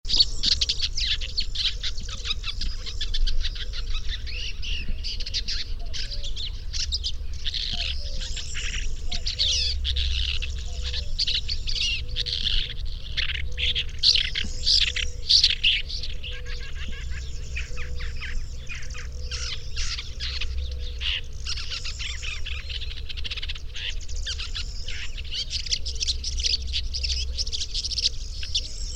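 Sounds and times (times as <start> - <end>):
bird song of fast bright chirps and warbled phrases: 0.1 - 28.9.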